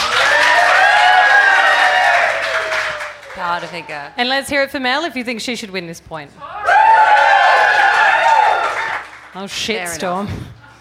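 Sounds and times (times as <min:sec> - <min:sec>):
audience applause and cheering: 0:00.0 - 0:04.2, 0:06.5 - 0:09.4
speech: 0:03.6 - 0:06.8, 0:09.3 - 0:10.6.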